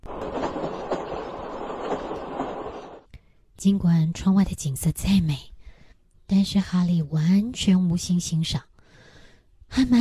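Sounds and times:
train traveling on rails: 0.0s - 3.1s
speech: 3.6s - 5.5s, 6.3s - 8.7s, 9.7s - 9.9s.

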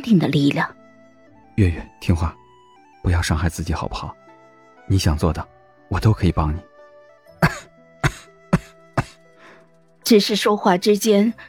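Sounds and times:
speech: 0.0s - 0.8s, 1.6s - 2.4s, 3.0s - 4.2s, 4.9s - 6.7s, 10.1s - 11.4s
heavy coughing: 7.4s - 9.3s.

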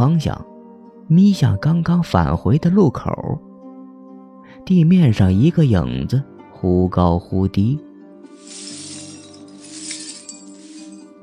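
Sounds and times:
speech: 0.0s - 0.5s, 1.1s - 3.5s, 4.5s - 7.9s
broken glass shards being swept up: 8.3s - 11.2s.

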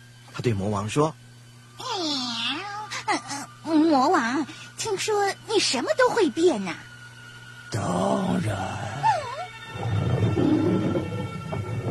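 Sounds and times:
speech: 0.4s - 1.2s, 3.6s - 6.9s, 7.7s - 8.9s
ferocious lion roaring: 9.7s - 11.8s.

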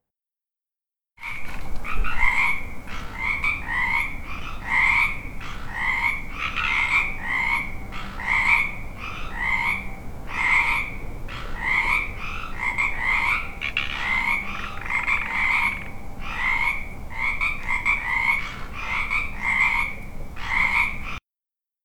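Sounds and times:
frogs croaking: 1.2s - 21.2s.

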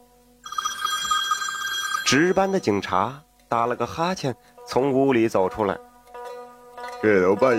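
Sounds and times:
Jiangzhou police station telephone ringing: 0.4s - 2.8s
speech: 2.1s - 5.9s, 7.0s - 7.5s.

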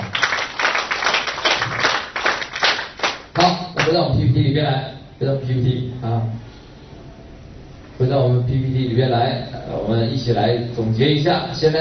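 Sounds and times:
audience applause: 0.0s - 3.4s
speech: 3.4s - 6.5s, 8.0s - 11.7s.

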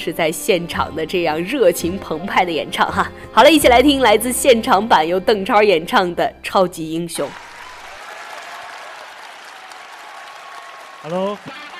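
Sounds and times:
speech: 0.0s - 7.5s, 11.0s - 11.6s
applause from a large live audience: 7.3s - 11.7s.

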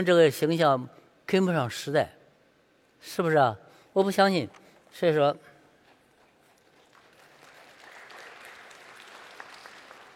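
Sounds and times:
speech: 0.0s - 2.2s, 3.0s - 5.5s
audience applause: 6.6s - 10.1s.

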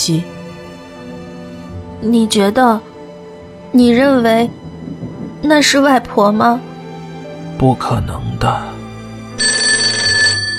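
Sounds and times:
speech: 0.0s - 0.4s, 2.0s - 2.9s, 3.7s - 4.6s, 5.4s - 6.7s, 7.6s - 8.8s
telephone ringing: 9.4s - 10.5s.

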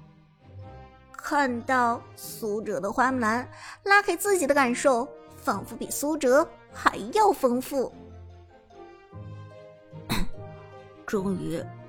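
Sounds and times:
speech: 1.3s - 8.0s, 11.1s - 11.8s
single cough: 10.1s - 10.4s.

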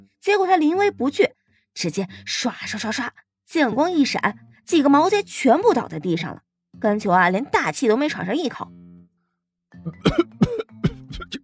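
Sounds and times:
speech: 0.2s - 8.8s, 9.7s - 10.5s
teacher giving dry throat-clearing coughs: 9.9s - 11.4s.

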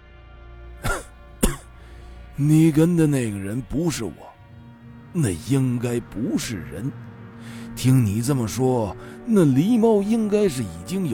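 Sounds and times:
grandfather coughing: 0.8s - 1.8s
speech: 2.4s - 4.3s, 5.2s - 11.1s.

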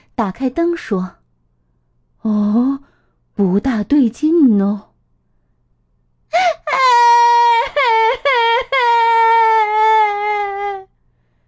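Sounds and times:
speech: 0.2s - 1.2s, 2.2s - 4.9s
little girl crying in bed: 6.4s - 10.9s.

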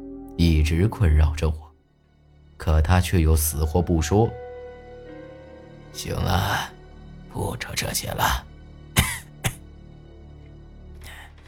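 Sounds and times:
speech: 0.4s - 1.6s, 2.6s - 4.4s, 6.0s - 6.8s, 7.4s - 8.4s
person coughing: 9.0s - 9.7s.

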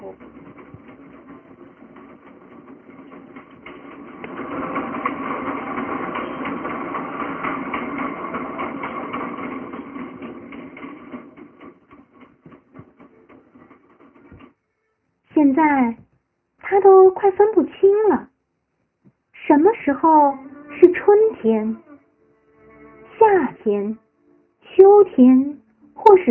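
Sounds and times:
elevated train running: 0.0s - 14.7s, 19.4s - 26.3s
speech: 15.6s - 16.0s, 16.8s - 18.3s, 19.5s - 21.8s, 23.2s - 24.0s, 24.8s - 26.3s.

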